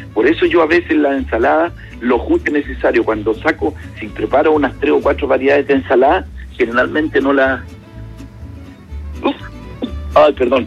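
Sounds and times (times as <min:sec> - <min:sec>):
speech: 0:00.2 - 0:07.8, 0:10.2 - 0:10.6
person sneezing: 0:09.2 - 0:10.1.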